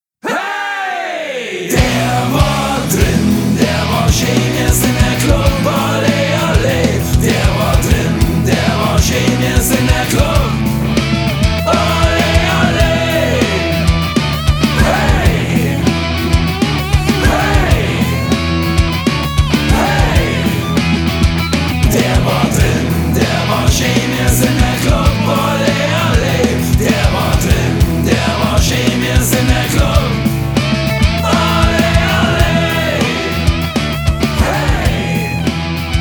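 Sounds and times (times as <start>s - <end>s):
goal anthem: 0.2s - 36.0s.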